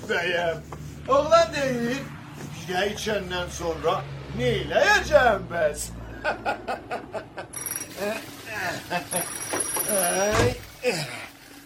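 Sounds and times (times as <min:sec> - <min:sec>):
speech: 0:00.1 - 0:07.0, 0:08.0 - 0:09.2
laughter: 0:06.0 - 0:10.1
telephone ringing: 0:07.6 - 0:08.3, 0:09.1 - 0:10.3.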